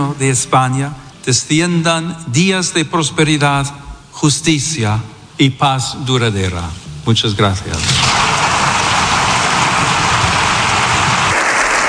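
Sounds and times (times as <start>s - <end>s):
speech: 0.0s - 8.1s
applause in the Congreso de los Diputados: 8.0s - 11.8s.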